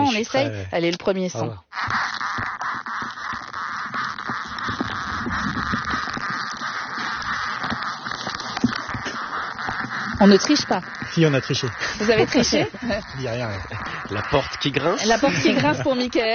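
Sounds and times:
ants moving through soil recorded with soil probe: 0.0s - 16.3s
speech: 0.1s - 2.5s, 10.2s - 16.3s
laughter: 11.1s - 16.3s.

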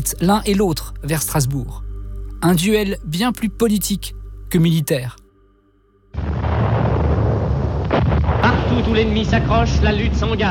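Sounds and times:
speech: 0.0s - 5.2s, 8.8s - 10.5s
motorised artillery cannon fire in a fir forest: 6.2s - 10.4s.

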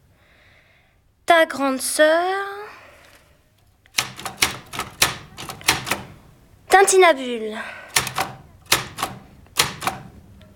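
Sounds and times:
speech: 1.3s - 2.6s, 6.8s - 7.8s
typewriter keys clacking: 3.9s - 6.3s, 7.9s - 10.2s.

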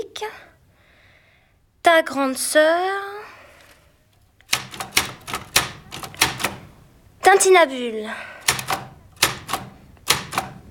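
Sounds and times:
speech: 0.2s - 0.5s, 1.8s - 3.2s, 7.3s - 8.4s
typewriter keys clacking: 4.5s - 6.7s, 8.4s - 10.6s.

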